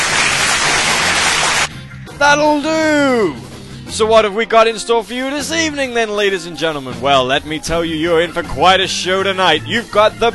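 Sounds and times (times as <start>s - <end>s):
applause sound effect: 0.0s - 1.7s
speech: 2.2s - 10.3s.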